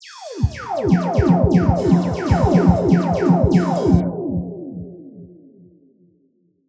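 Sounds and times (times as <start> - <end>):
drum mix: 0.2 - 4.1.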